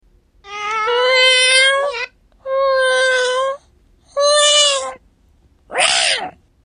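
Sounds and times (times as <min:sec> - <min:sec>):
cat meowing: 0:00.4 - 0:03.6, 0:04.2 - 0:05.0, 0:05.7 - 0:06.4.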